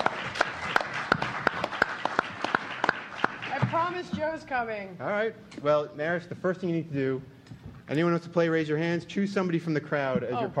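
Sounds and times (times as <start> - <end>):
audience clapping: 0.0 - 4.5
crowd noise: 0.0 - 4.5
speech: 3.9 - 10.5.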